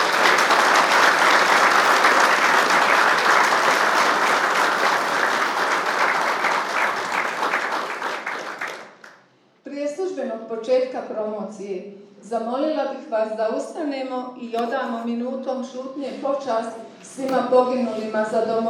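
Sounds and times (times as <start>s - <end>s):
audience applause at a promotion event: 0.0s - 9.2s
speech: 11.2s - 18.6s.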